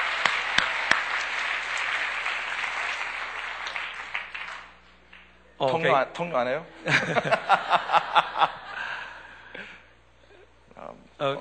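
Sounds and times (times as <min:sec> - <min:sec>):
audience applause: 0:00.0 - 0:05.3
speech: 0:05.6 - 0:08.0
laughter: 0:06.7 - 0:09.8.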